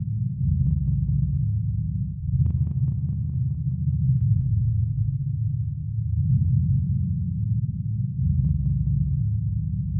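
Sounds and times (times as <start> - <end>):
music: 0.0 - 9.9.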